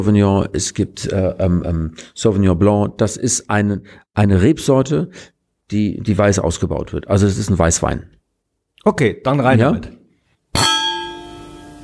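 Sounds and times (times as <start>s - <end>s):
speech: 0.0s - 8.2s, 8.8s - 10.0s
wine glasses clinking together: 10.6s - 11.8s.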